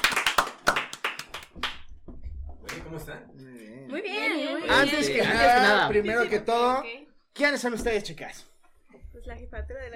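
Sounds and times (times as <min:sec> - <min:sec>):
applause: 0:00.0 - 0:01.9
speech: 0:02.9 - 0:08.5.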